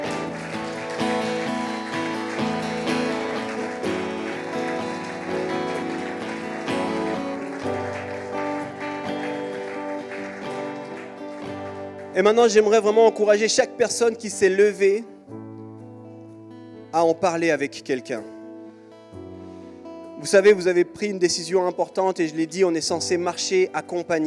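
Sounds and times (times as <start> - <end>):
sustained music chords: 0.0 - 12.2
crowd clapping: 0.0 - 12.9
speech: 12.2 - 15.1, 16.9 - 18.4, 20.2 - 24.2.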